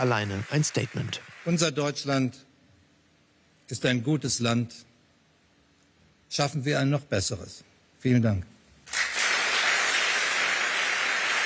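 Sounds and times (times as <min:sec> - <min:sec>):
applause and standing ovation: 0:00.0 - 0:01.9, 0:08.8 - 0:11.4
speech: 0:00.0 - 0:02.5, 0:03.7 - 0:04.9, 0:06.3 - 0:09.1.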